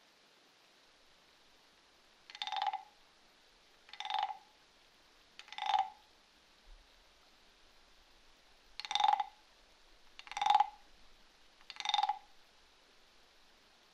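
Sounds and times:
frogs croaking: 2.3s - 3.0s, 3.9s - 4.6s, 5.4s - 6.1s, 8.8s - 9.5s, 10.2s - 11.0s, 11.6s - 12.4s.

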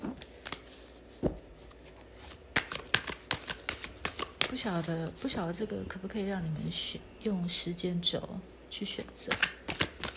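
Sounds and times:
playing cards being shuffled: 0.0s - 5.4s, 9.3s - 10.1s
speech: 4.6s - 9.8s.

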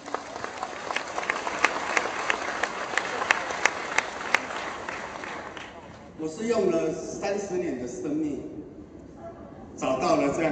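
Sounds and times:
audience applause: 0.0s - 6.1s
speech: 6.2s - 8.6s, 9.8s - 10.5s.

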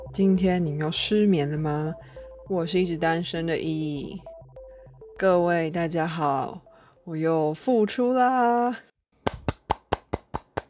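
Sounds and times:
speech: 0.1s - 4.3s, 5.2s - 8.9s
soft finger clapping: 9.2s - 10.6s.

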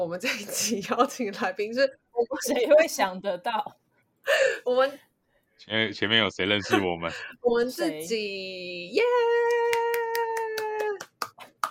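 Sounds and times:
speech: 0.0s - 9.8s
clapping: 9.3s - 11.6s.

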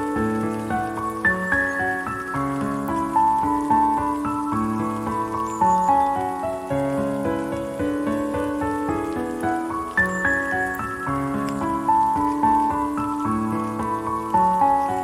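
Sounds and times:
gentle melody: 0.0s - 15.0s
steady rain: 0.0s - 15.0s.

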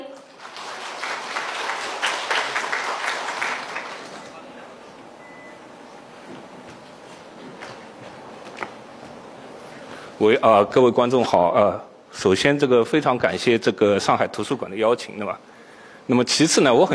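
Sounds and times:
audience applause welcoming a speaker: 0.2s - 4.6s
speech: 10.2s - 15.5s, 16.1s - 16.9s.

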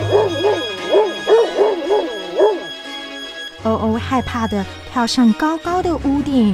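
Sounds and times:
big dog barking: 0.0s - 2.9s
speech: 4.1s - 6.5s.

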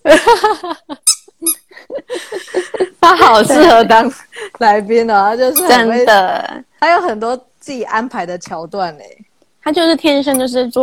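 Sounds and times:
speech: 0.0s - 1.0s, 3.3s - 10.8s
dog biting a squeaky toy duck: 1.0s - 1.6s.

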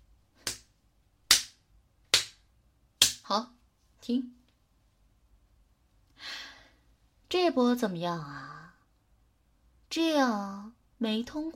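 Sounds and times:
person slapping their own face: 0.4s - 0.7s, 1.3s - 3.3s
speech: 3.3s - 4.4s, 7.3s - 8.6s, 9.9s - 11.5s.

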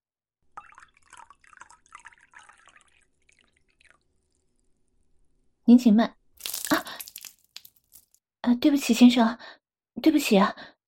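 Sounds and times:
champagne being poured into a glass: 0.6s - 4.0s, 6.4s - 8.1s
speech: 5.7s - 6.2s, 8.6s - 10.7s.

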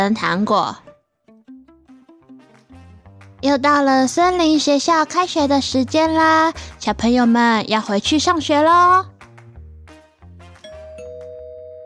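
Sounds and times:
speech: 0.0s - 0.8s, 3.4s - 9.1s
doorbell ringing: 10.6s - 11.8s.

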